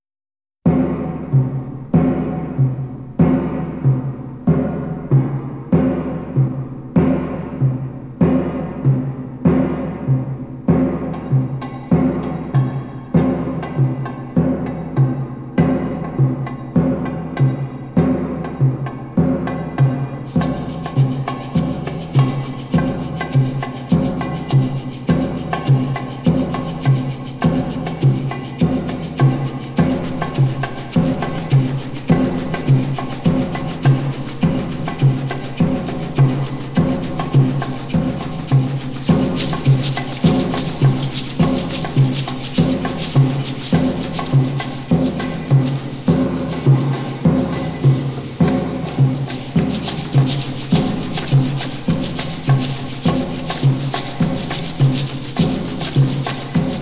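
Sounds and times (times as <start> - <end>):
batucada drumming: 0.7 - 56.8.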